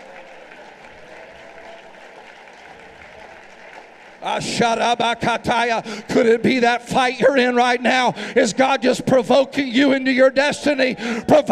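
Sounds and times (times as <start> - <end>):
audience clapping hands: 0.0 - 6.5
speech: 4.2 - 11.4.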